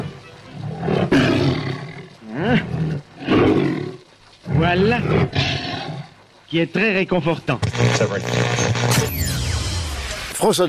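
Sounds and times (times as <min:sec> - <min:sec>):
big cats roaring in a circus menagerie: 0:00.0 - 0:06.2
speech: 0:06.5 - 0:09.2, 0:10.4 - 0:10.6.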